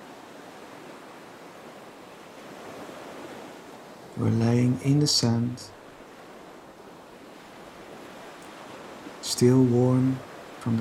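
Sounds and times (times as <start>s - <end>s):
ocean waves on a beach: 0.0s - 10.7s
speech: 4.2s - 5.8s, 9.4s - 10.7s.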